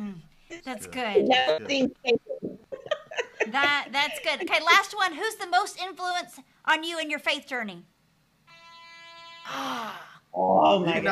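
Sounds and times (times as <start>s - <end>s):
speech: 0.5s - 2.3s, 3.5s - 7.9s, 9.5s - 11.1s
laughter: 2.7s - 4.8s
buzzer going off: 8.5s - 9.6s.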